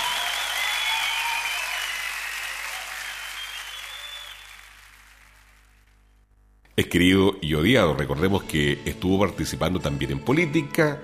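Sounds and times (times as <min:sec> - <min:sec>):
audience applause: 0:00.0 - 0:05.8
speech: 0:06.8 - 0:11.0.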